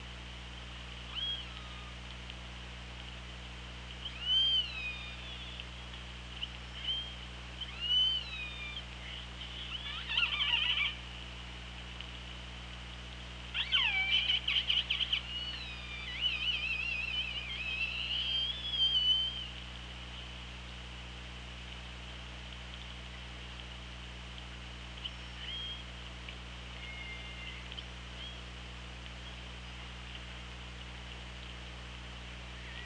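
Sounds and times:
steady low hum and hiss of underwater noise: 0.0s - 32.8s
killer whale whistles: 1.2s - 2.0s, 4.0s - 5.6s, 6.8s - 11.0s, 13.6s - 19.6s, 25.4s - 25.9s, 26.8s - 28.4s.

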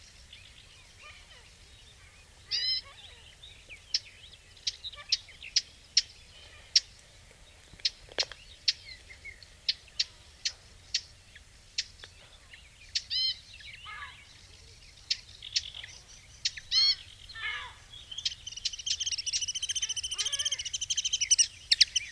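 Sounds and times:
other birds chirping: 0.0s - 22.0s
Eurasian blackcap clicking tac calls: 2.5s - 7.0s, 7.7s - 11.1s, 11.8s - 12.2s, 12.9s - 14.2s, 15.0s - 17.1s, 18.2s - 22.0s.

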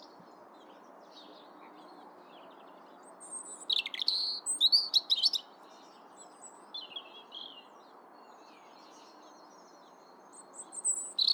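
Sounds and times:
European robin Erithacus rubecula singing: 3.1s - 7.7s, 10.3s - 11.3s.

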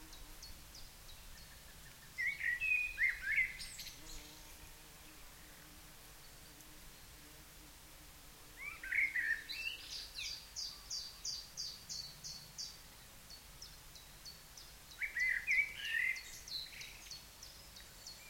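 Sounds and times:
Common blackbird singing: 0.1s - 4.3s, 8.6s - 12.8s, 14.0s - 18.2s.

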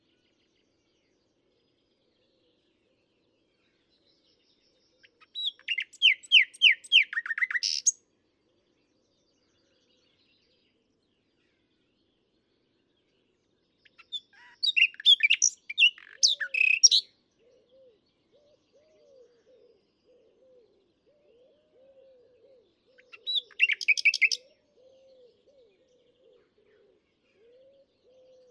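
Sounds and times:
common nightingale singing: 5.0s - 8.0s, 13.8s - 20.8s, 21.8s - 26.4s.

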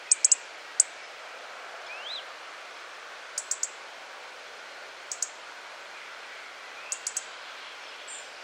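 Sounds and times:
European robin ticking calls: 0.0s - 1.0s, 3.4s - 3.8s, 5.1s - 5.4s, 6.8s - 7.3s
steady background hiss: 0.0s - 8.4s.

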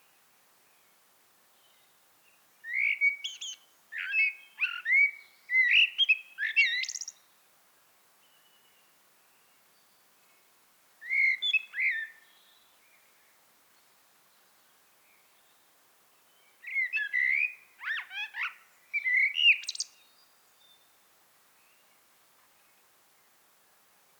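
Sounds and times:
faint background hiss: 0.0s - 24.1s
common blackbird calls: 2.7s - 7.2s, 16.6s - 20.0s.

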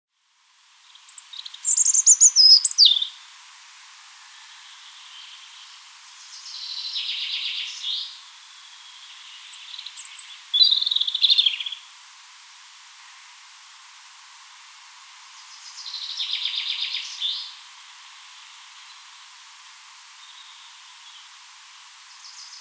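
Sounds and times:
European robin song: 0.9s - 3.2s, 4.9s - 11.9s, 15.4s - 17.6s.

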